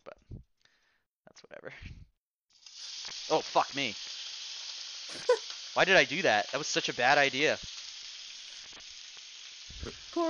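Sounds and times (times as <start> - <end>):
speech: 1.6 - 2.0, 3.3 - 4.2, 5.1 - 7.7, 9.9 - 10.2
liquid sizzling and spitting in hot oil: 2.5 - 10.2.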